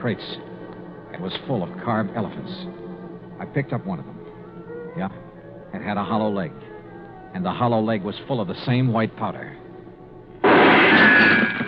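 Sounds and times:
speech: 0.0s - 0.5s, 1.2s - 4.2s, 5.0s - 6.7s, 7.3s - 9.6s
gunshot in a warehouse: 10.4s - 11.6s.

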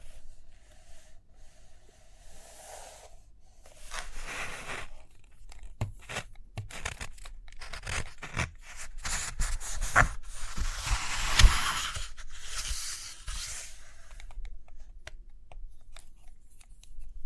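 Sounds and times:
paper rustling as pages turn: 3.8s - 13.8s.

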